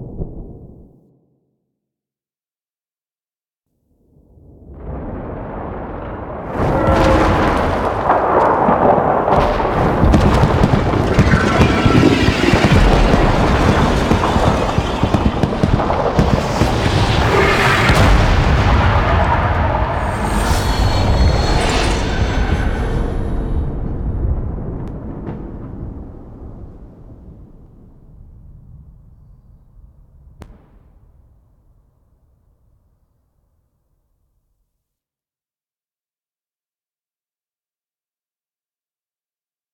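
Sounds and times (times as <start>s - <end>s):
debris landing: 4.8s - 27.2s.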